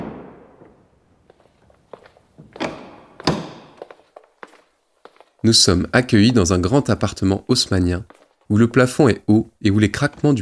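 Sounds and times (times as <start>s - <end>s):
lighter taps and shuffling: 1.2s - 9.0s
door opening with knocks, clunks and thuds: 2.4s - 3.8s
speech: 5.4s - 10.3s.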